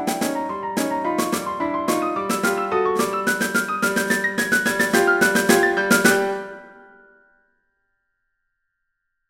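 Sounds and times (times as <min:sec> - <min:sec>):
music piece at 72 bpm: 0:00.0 - 0:07.4.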